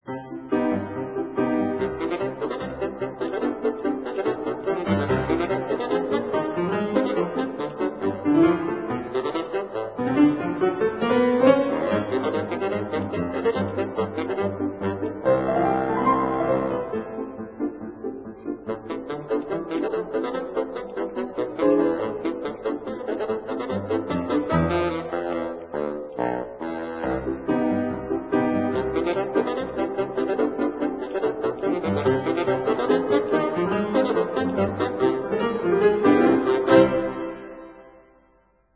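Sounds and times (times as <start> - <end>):
bassoon playing polka: 0.5 - 38.1.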